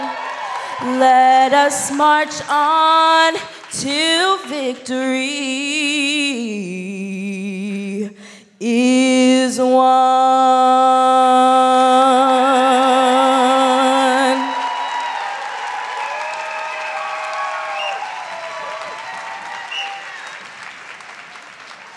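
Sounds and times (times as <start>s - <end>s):
applause after a performance: 0.0s - 5.6s, 13.7s - 21.9s
speech: 0.8s - 13.4s.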